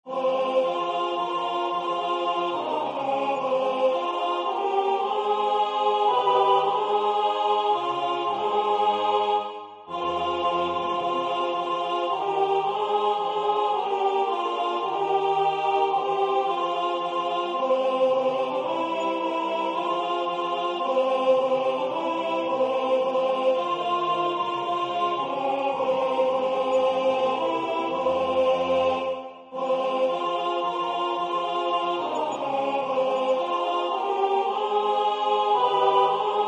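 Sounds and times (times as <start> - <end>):
folk song from Gotland: 0.0 - 36.4.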